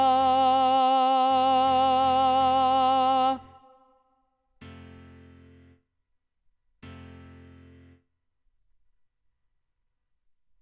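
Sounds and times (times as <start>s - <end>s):
choir singing with alto voices: 0.0s - 3.9s.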